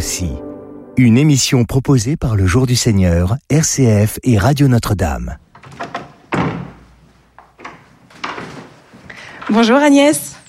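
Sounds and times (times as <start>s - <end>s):
speech: 0.0s - 5.8s, 9.5s - 10.3s
latch and frame clunks: 5.5s - 8.7s
door being handled and shut: 5.5s - 9.8s.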